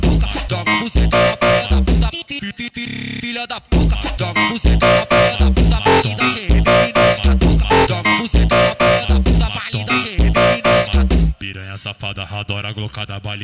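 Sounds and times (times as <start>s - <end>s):
funk music: 0.0s - 2.1s, 3.8s - 11.4s.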